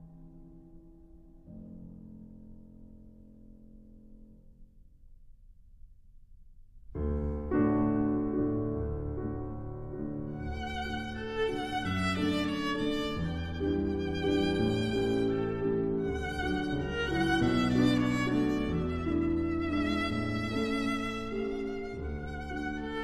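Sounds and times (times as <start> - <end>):
piano: 0.0 - 23.0
violin: 9.8 - 23.0.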